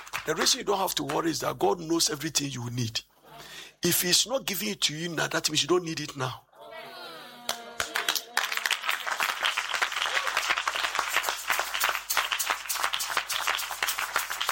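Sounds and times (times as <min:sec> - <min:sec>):
audience applause and clapping: 0:00.0 - 0:00.7, 0:07.5 - 0:14.5
speech: 0:00.2 - 0:06.5.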